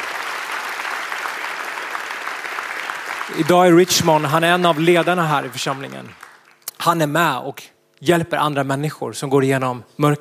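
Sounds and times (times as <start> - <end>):
crowd applause: 0.0 - 6.6
speech: 3.3 - 6.2, 6.8 - 10.1.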